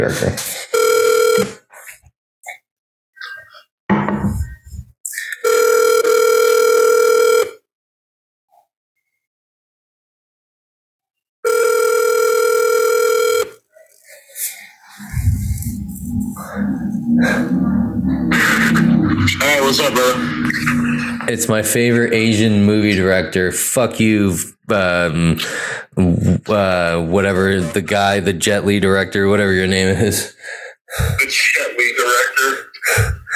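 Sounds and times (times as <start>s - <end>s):
speech: 0.0s - 0.6s, 1.4s - 1.6s, 19.7s - 20.7s, 21.3s - 33.2s
outgoing telephone call ringback tone: 0.8s - 1.6s, 5.4s - 7.6s, 11.5s - 13.6s
voice on the line: 14.8s - 23.4s.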